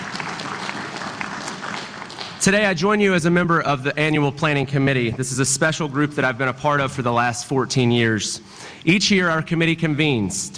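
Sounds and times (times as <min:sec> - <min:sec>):
crowd applause: 0:00.0 - 0:02.5
speech: 0:02.4 - 0:10.5.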